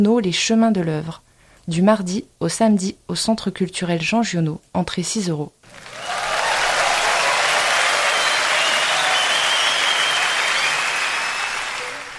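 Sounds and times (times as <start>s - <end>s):
speech: 0.0s - 5.9s
recorded crowd applause from a tape: 5.6s - 12.1s.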